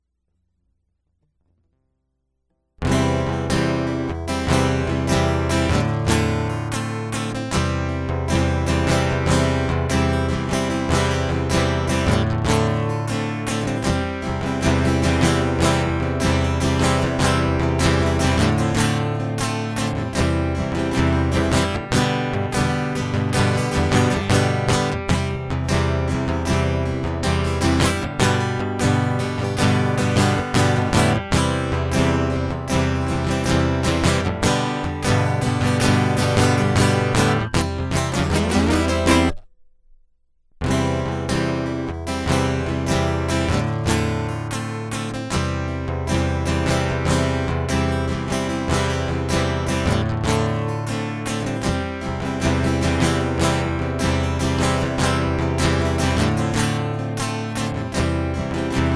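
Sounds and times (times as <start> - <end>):
guitar loop: 2.8 - 40.0, 40.6 - 58.9.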